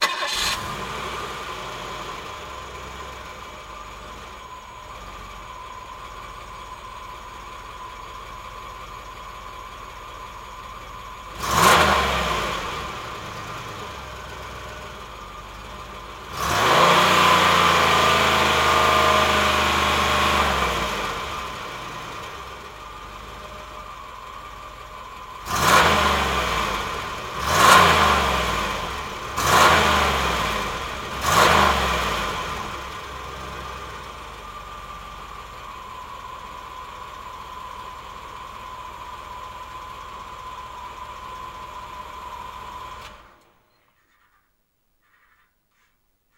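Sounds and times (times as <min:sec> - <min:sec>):
1990 Cadillac stationary engine revs: 0:00.0 - 0:04.3, 0:11.2 - 0:15.0, 0:16.0 - 0:22.6, 0:25.3 - 0:34.6.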